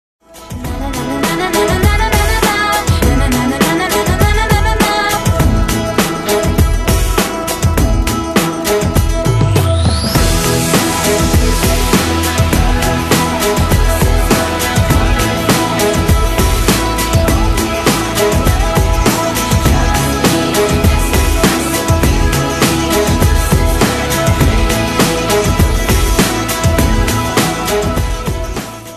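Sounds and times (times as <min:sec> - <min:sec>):
karaoke singing: 0:00.4 - 0:28.9.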